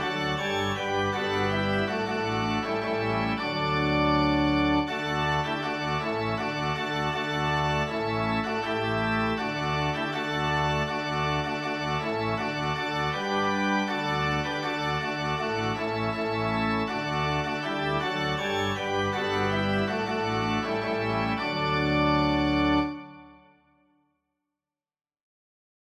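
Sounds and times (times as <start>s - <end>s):
organ music: 0.0s - 23.6s.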